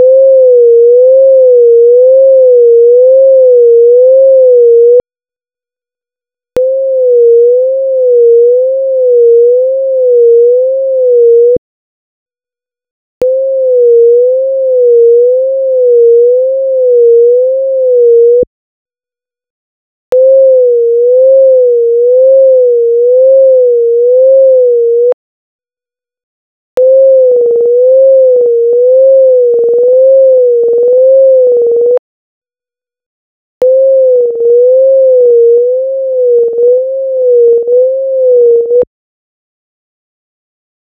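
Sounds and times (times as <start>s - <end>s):
500 Hz sine tone: 0.0s - 5.1s, 6.2s - 11.6s, 13.2s - 18.5s, 20.1s - 25.2s, 26.8s - 32.1s, 32.7s - 39.0s.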